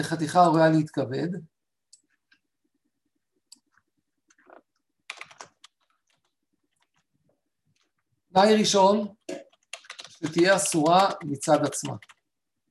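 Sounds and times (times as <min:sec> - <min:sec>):
speech: 0:00.0 - 0:01.5, 0:08.4 - 0:09.4, 0:10.2 - 0:12.1
keyboard typing as notes are written down: 0:03.5 - 0:07.1, 0:09.2 - 0:12.3.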